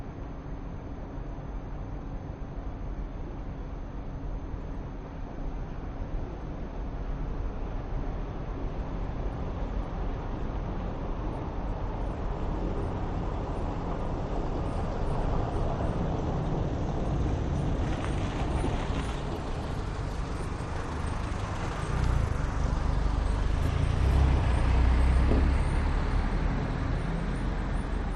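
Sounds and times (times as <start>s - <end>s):
city ambience at night: 0.0s - 28.1s
cars passing by in a city at night: 12.0s - 28.1s.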